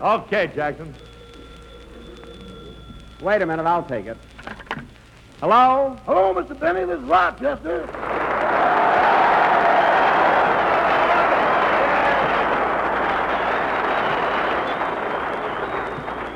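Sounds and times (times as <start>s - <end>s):
speech: 0.0s - 1.1s, 3.2s - 4.3s, 5.4s - 8.2s
studio audience applause: 7.9s - 16.3s.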